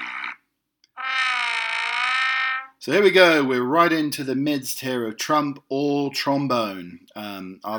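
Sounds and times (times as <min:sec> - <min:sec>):
foghorn: 0:01.0 - 0:02.7
speech: 0:02.9 - 0:07.7.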